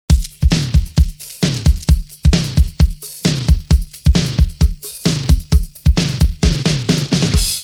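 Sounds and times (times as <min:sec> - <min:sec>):
drum intro: 0:00.0 - 0:07.6.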